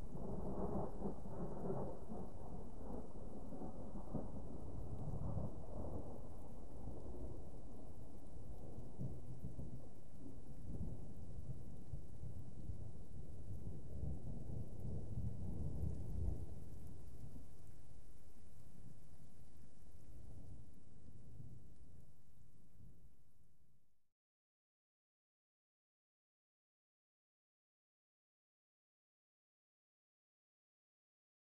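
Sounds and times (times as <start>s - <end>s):
explosive distant thunder: 0.0s - 18.0s.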